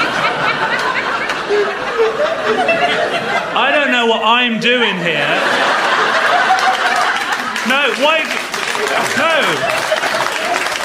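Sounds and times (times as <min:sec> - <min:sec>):
audience clapping: 0:00.0 - 0:01.7, 0:05.8 - 0:10.8
audience laughter: 0:00.0 - 0:04.2, 0:04.9 - 0:10.8
speech: 0:03.6 - 0:05.8, 0:07.7 - 0:09.8.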